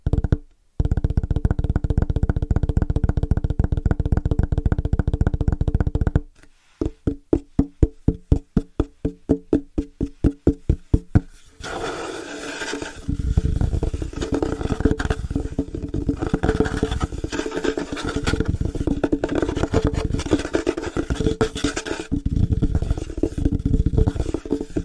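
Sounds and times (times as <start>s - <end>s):
fast rhythmic tapping on different surfaces: 0.0s - 24.8s.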